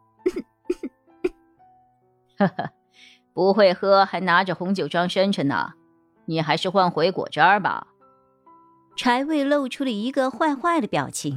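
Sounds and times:
person coughing: 0.2 - 1.4
speech: 2.4 - 7.9, 9.0 - 11.3.

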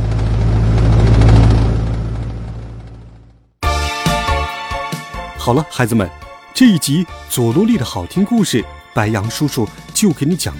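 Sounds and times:
distant airplane engine drone: 0.0 - 3.5
bright burst of music: 3.6 - 10.5
speech: 5.5 - 10.5.

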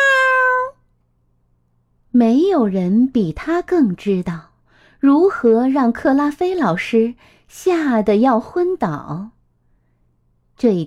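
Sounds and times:
cat meow: 0.0 - 0.8
speech: 2.2 - 9.4, 10.6 - 10.8.

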